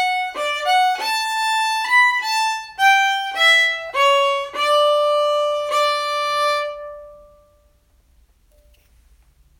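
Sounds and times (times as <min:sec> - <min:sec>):
reel tune: 0:00.0 - 0:07.6.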